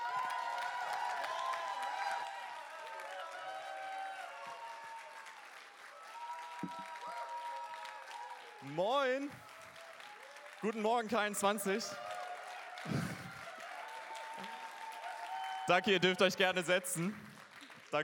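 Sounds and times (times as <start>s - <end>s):
audience applause: 0.0s - 18.0s
speech: 8.6s - 9.5s, 10.6s - 12.1s, 15.7s - 17.3s.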